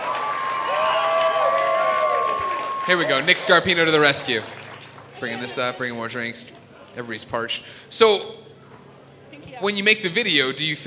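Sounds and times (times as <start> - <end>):
cheers and whistles: 0.0 - 3.8
audience applause: 0.0 - 6.0
speech: 2.9 - 4.6, 5.2 - 8.5, 9.6 - 10.8.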